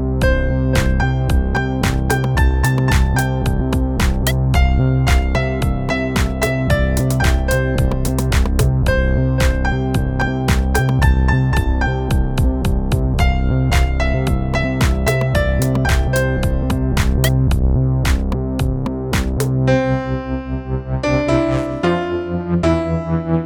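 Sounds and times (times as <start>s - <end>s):
remix music: 0.2s - 23.4s.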